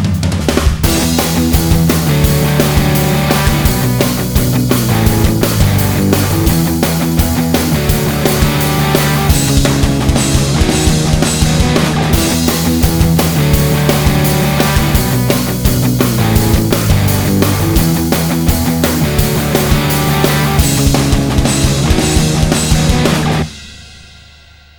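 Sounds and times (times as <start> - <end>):
backing track music: 0.0 - 24.0.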